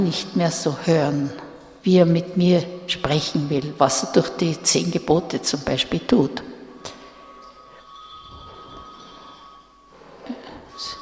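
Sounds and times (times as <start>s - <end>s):
speech: 0.0s - 7.0s
bell or mobile phone ringing: 6.8s - 11.0s.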